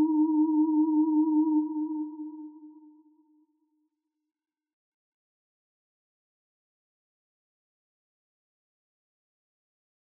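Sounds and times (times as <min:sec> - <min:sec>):
cheap horror theremin: 0:00.0 - 0:02.8.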